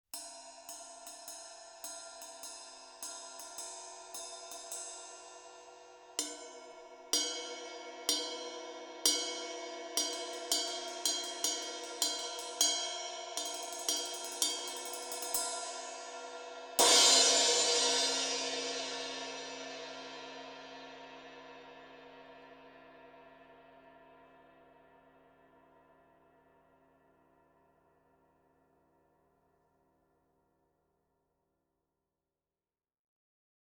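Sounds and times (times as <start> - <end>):
ride cymbal: 0.2 - 19.7.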